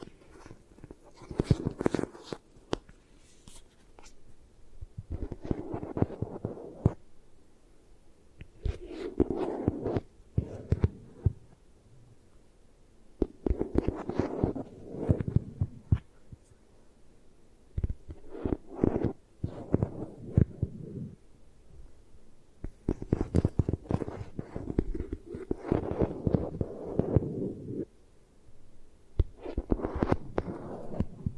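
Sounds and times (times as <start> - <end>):
eye massage rubbing and pressing: 0.0 - 2.5, 5.0 - 7.0, 8.6 - 11.6, 13.2 - 16.5, 17.8 - 21.2, 22.6 - 27.9, 29.2 - 31.3.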